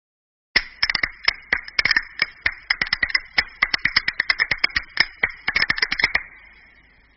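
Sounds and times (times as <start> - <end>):
bolero and flamenco music: 0.6 - 6.7.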